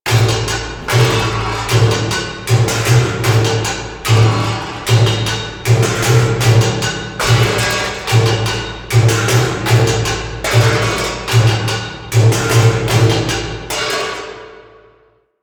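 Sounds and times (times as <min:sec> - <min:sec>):
music: 0:00.0 - 0:15.4
exterior ambience: 0:00.1 - 0:09.8.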